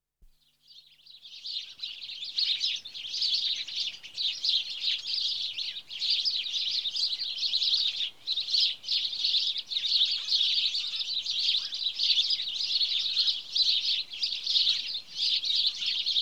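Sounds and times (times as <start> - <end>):
house sparrow Passer domesticus chorus chirping: 0.4 - 16.1.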